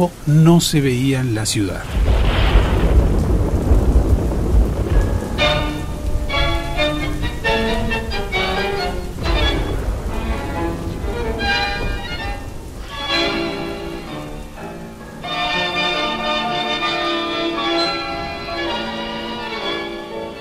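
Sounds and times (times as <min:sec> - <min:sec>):
speech: 0:00.0 - 0:02.1
wind in a thunderstorm: 0:00.0 - 0:15.2
rain in a thunderstorm: 0:00.0 - 0:20.3.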